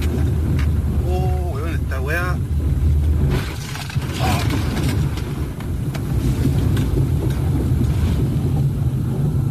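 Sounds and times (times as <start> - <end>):
low rumbling: 0.0 - 9.4
rushing floodwater carrying a pickup truck: 0.0 - 9.4
scattered sharp knocks and crashes: 3.2 - 8.6.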